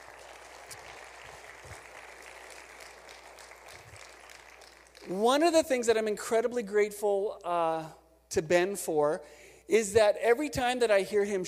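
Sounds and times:
audience clapping: 0:00.0 - 0:05.5
speech: 0:05.1 - 0:11.4.

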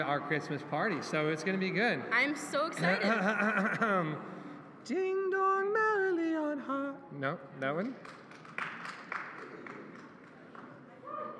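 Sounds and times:
speech: 0:00.0 - 0:08.2
laughter: 0:02.8 - 0:04.2
two people clapping: 0:07.7 - 0:11.2.

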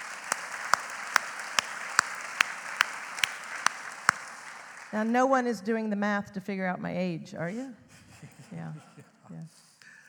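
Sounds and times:
audience applause: 0:00.0 - 0:05.1
speech: 0:04.9 - 0:07.8, 0:08.5 - 0:09.7.

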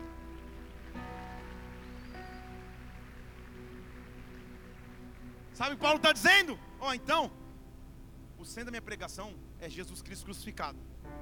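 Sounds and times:
audience applauding: 0:00.0 - 0:06.1
speech: 0:05.6 - 0:07.4, 0:08.4 - 0:11.2.

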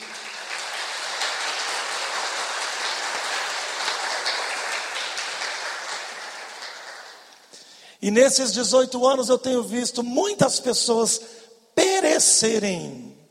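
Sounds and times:
audience applause: 0:00.0 - 0:07.5
speech: 0:08.0 - 0:11.4, 0:12.2 - 0:13.2.

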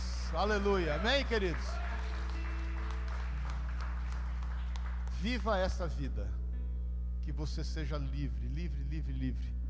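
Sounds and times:
applause: 0:00.2 - 0:05.8
speech: 0:00.3 - 0:01.8, 0:05.2 - 0:06.4, 0:07.3 - 0:09.6.

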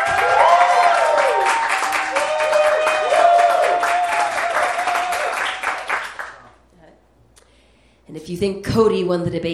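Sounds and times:
audience cheering and applauding: 0:00.0 - 0:06.5
speech: 0:08.4 - 0:09.5.

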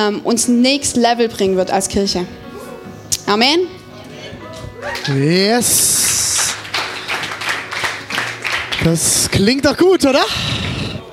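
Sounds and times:
speech: 0:00.0 - 0:02.5, 0:03.3 - 0:03.8, 0:04.8 - 0:06.6, 0:08.8 - 0:10.7
restrained applause: 0:04.8 - 0:09.5.

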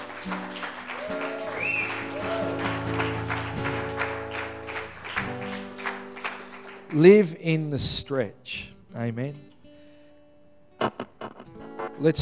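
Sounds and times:
crowd clapping: 0:00.0 - 0:07.4
speech: 0:00.2 - 0:02.6, 0:06.9 - 0:09.5, 0:12.0 - 0:12.1.

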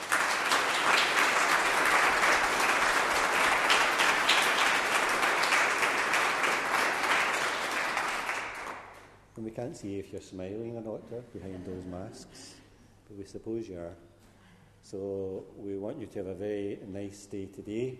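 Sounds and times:
audience applauding: 0:00.0 - 0:09.0
speech: 0:09.6 - 0:14.1, 0:14.9 - 0:17.9.

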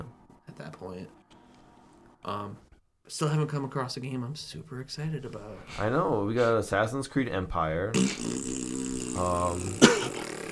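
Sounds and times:
speech: 0:00.8 - 0:01.2, 0:02.2 - 0:10.0
long wet fart: 0:07.9 - 0:10.4.

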